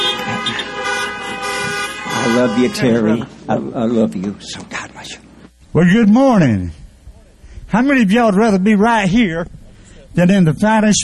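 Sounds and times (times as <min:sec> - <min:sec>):
horn blowing: 0:00.0 - 0:03.4
speech: 0:02.3 - 0:06.8, 0:07.7 - 0:11.0.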